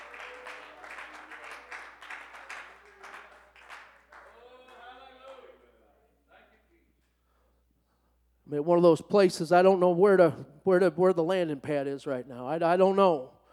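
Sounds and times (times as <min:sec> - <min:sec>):
audience clapping hands in praise: 0:00.0 - 0:05.6
speech: 0:08.5 - 0:13.4.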